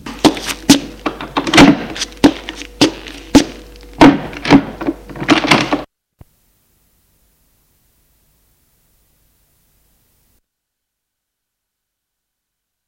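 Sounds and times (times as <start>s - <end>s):
wooden clunks and knocks of bedroom door: 0.0s - 5.8s
bedroom door being opened: 0.0s - 5.9s.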